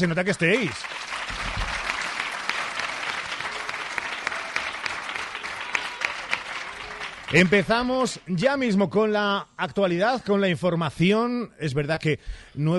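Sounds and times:
speech: 0.0s - 1.4s, 7.3s - 12.7s
group clapping: 0.0s - 8.2s.

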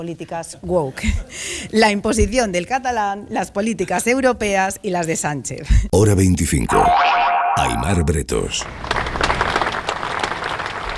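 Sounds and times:
speech: 0.0s - 9.0s
crowd applauding at a Bilbao rally ending a minute of silence: 8.6s - 10.9s.

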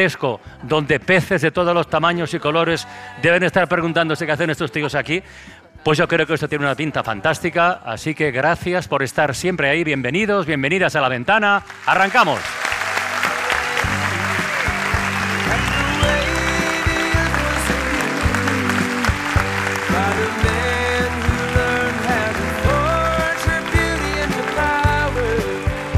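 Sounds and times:
speech: 0.0s - 12.7s
audience applause: 11.6s - 25.9s.

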